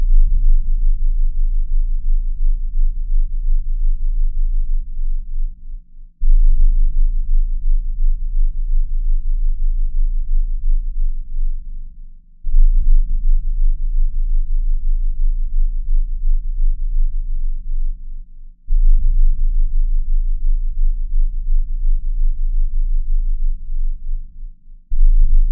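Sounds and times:
20Hz to 30Hz low frequency tone: 0.0s - 25.5s.

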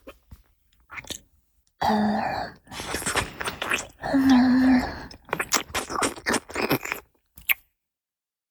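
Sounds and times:
light nipple licking with sucking sounds: 2.7s - 7.6s.

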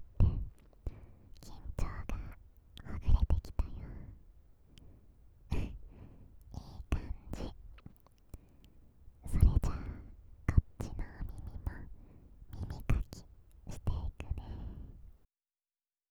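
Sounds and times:
older sister breathing sweetly: 0.2s - 2.4s, 3.7s - 7.7s, 8.3s - 13.3s, 14.1s - 15.2s.

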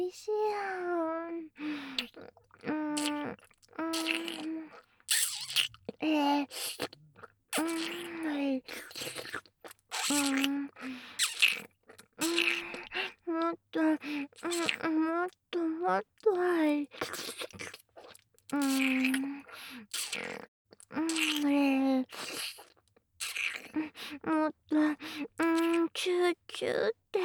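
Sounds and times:
oral sex sounds: 0.1s - 27.2s
nipple licking: 1.6s - 15.0s, 16.2s - 24.2s, 24.9s - 26.0s
ear licking: 1.9s - 13.2s, 16.9s - 20.5s, 22.1s - 24.2s.

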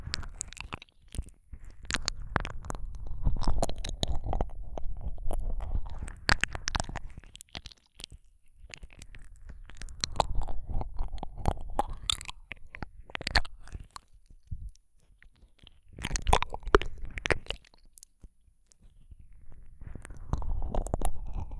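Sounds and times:
ASMR ear licking sounds: 0.1s - 7.7s, 8.6s - 14.1s, 16.0s - 17.8s, 19.8s - 21.5s.

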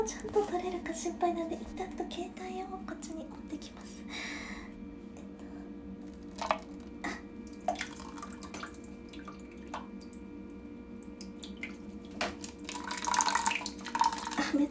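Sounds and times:
speech: 0.0s - 4.7s, 6.4s - 6.8s
urinating into a paper cup: 12.3s - 14.5s.

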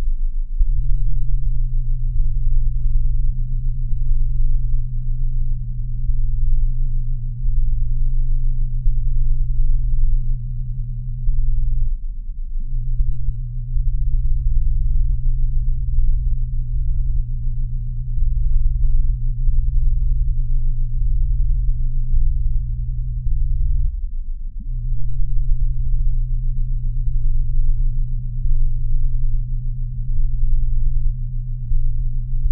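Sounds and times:
23 Hz theta and 30 Hz tones: 0.0s - 32.4s.

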